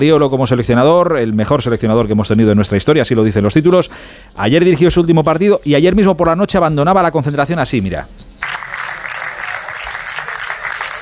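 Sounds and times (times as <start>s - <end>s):
speech: 0.0s - 8.2s
applause from players and staff: 8.4s - 10.9s.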